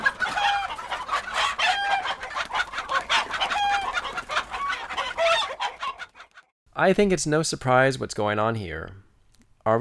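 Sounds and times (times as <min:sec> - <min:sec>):
chicken clucking and crowing: 0:00.0 - 0:06.5
speech: 0:06.8 - 0:09.0.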